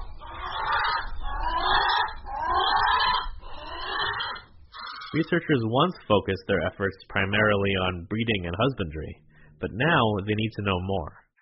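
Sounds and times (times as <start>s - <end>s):
Hawaiian crow calls: 0.0s - 5.3s
speech: 5.2s - 11.2s.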